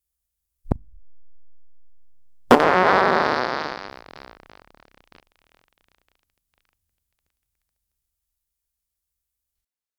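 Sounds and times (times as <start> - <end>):
ultra short fart: 2.3 - 5.6.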